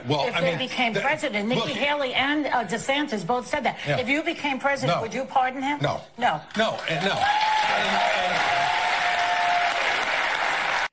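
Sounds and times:
speech: 0:00.0 - 0:08.5
audience applause: 0:06.9 - 0:10.9.

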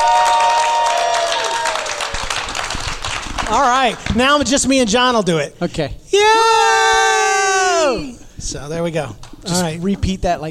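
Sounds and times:
high whoops from a live studio audience: 0:00.0 - 0:02.3, 0:06.1 - 0:08.2
live studio audience applauding and cheering: 0:00.0 - 0:04.2
speech: 0:03.5 - 0:06.8, 0:07.9 - 0:10.5.

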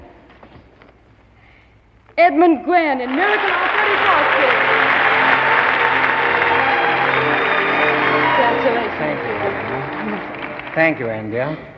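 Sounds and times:
speech: 0:02.2 - 0:04.6, 0:08.6 - 0:11.7
audience applause at an awards ceremony: 0:03.0 - 0:11.4.

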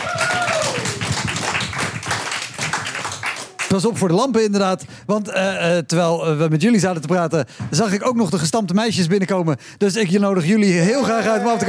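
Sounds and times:
audience applause: 0:00.0 - 0:03.8
speech: 0:03.7 - 0:11.6.

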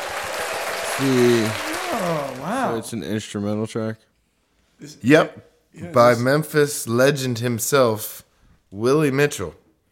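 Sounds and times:
applause: 0:00.0 - 0:02.8
speech: 0:01.0 - 0:04.1, 0:04.8 - 0:09.6.

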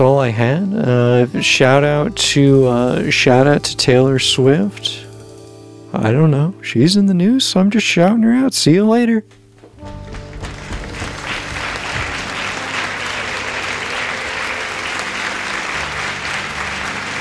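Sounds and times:
speech: 0:00.0 - 0:05.0, 0:05.9 - 0:10.0
crowd applause: 0:10.1 - 0:17.2.

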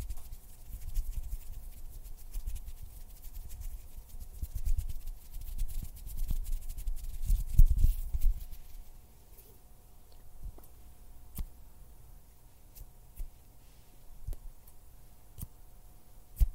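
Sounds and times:
hand fluttering and rubbing: 0:00.0 - 0:09.0
faint steady hum: 0:00.0 - 0:16.5.

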